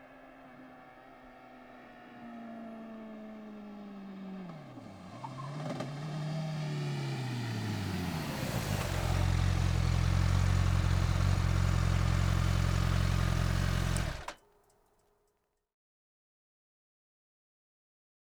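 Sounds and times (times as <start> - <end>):
Honda CBR 1100 XX Superblackbird motorcycle engine: 0.8 - 14.4.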